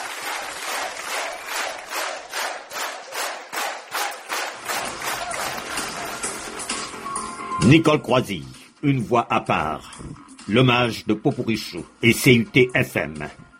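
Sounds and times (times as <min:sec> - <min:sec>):
audience applause: 0:00.0 - 0:07.0
speech: 0:07.6 - 0:13.4.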